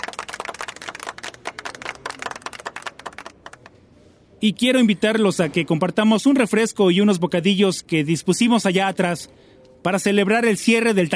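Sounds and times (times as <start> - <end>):
audience applause: 0.0 - 3.7
speech: 4.4 - 11.1.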